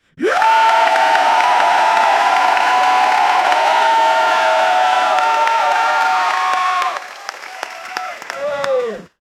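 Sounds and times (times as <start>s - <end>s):
team motivation cheering: 0.2s - 9.1s.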